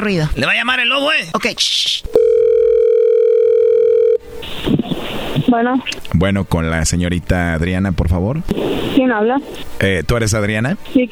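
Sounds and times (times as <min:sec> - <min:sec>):
speech: 0:00.0 - 0:02.2, 0:05.5 - 0:11.1
telephone dial tone: 0:02.1 - 0:04.2
telephone line noise: 0:04.1 - 0:06.1, 0:08.5 - 0:09.8.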